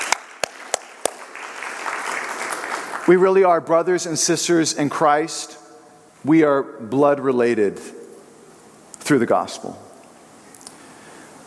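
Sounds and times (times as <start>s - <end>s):
congregation clapping at a church worship service: 0.0s - 3.7s
speech: 3.1s - 5.6s, 6.2s - 8.0s, 9.1s - 9.8s.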